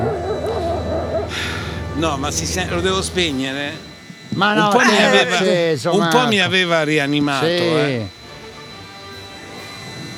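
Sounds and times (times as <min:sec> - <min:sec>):
small turbine blowing air: 0:00.0 - 0:04.4
speech: 0:02.0 - 0:08.2.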